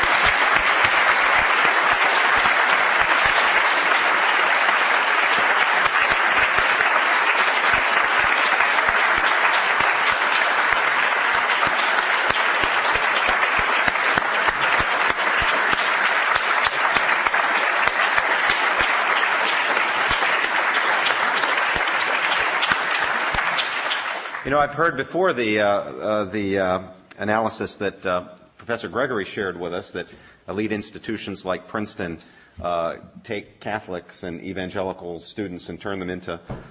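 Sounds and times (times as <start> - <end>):
audience applause for conference presenters: 0.0 - 25.0
speech: 24.6 - 36.6.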